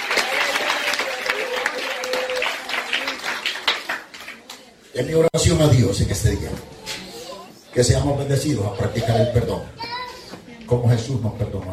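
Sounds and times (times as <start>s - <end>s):
audience applause: 0.0s - 4.6s
speech: 5.0s - 6.7s, 7.8s - 9.9s, 10.7s - 11.7s.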